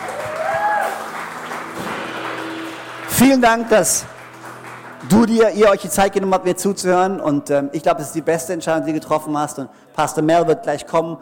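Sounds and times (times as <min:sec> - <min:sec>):
audience applause: 0:00.0 - 0:06.3
speech: 0:03.2 - 0:04.2, 0:05.0 - 0:11.2.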